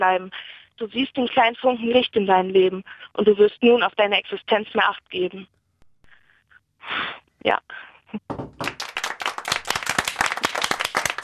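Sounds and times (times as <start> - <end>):
speech: 0.0 - 5.6, 6.8 - 8.7
small group applauding: 8.3 - 11.2.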